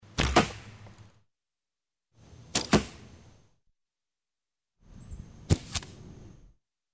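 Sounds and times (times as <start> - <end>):
arrow hitting the target: 0.0 - 1.1, 2.5 - 3.1, 5.4 - 6.0
bow shooting: 0.0 - 1.2, 2.5 - 3.2, 5.4 - 6.1.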